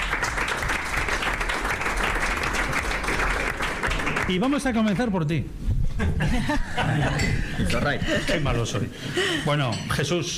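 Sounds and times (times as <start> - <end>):
audience applause: 0.0 - 5.0
speech: 4.3 - 10.3
laughter: 5.9 - 9.4.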